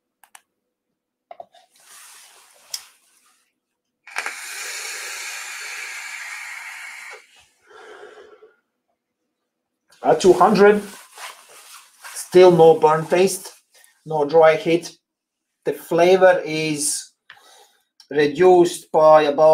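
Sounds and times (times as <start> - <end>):
electronic vape clicks: 4.1 - 7.3
electronic vape fired at 200 watts hissing vapor: 4.1 - 8.4
speech: 10.0 - 11.0, 12.4 - 15.0, 15.6 - 17.1, 18.1 - 19.5.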